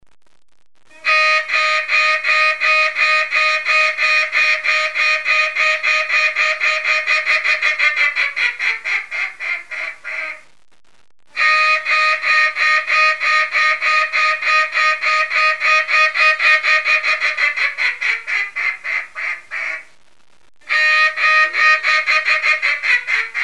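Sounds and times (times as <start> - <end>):
Mallard quacking: 0.9 - 10.4, 11.4 - 19.9, 20.7 - 23.4.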